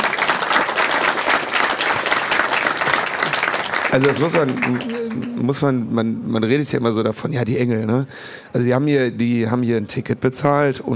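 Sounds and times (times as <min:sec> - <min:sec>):
audience applauding: 0:00.0 - 0:05.6
speech: 0:03.9 - 0:10.9.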